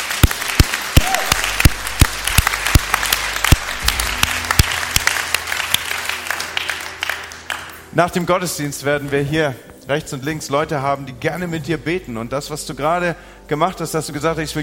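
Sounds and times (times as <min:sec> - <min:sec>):
audience applause: 0:00.0 - 0:07.9
speech: 0:08.0 - 0:14.6.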